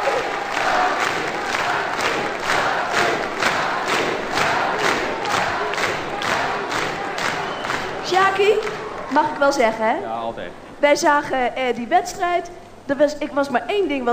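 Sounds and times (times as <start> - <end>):
studio audience shouting and cheering: 0.0 - 9.6
speech: 9.2 - 14.1.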